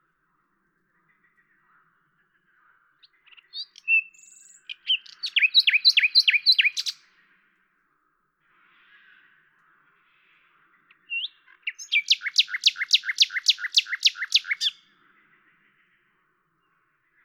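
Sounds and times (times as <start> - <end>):
common nightingale singing at Lavours in France: 0.9 - 7.2, 10.4 - 17.2.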